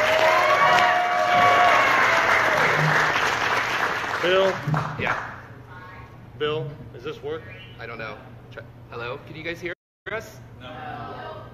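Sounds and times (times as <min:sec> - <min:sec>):
audience applause on a comedy show: 0:00.0 - 0:05.4
speech: 0:04.2 - 0:05.3, 0:06.4 - 0:10.9.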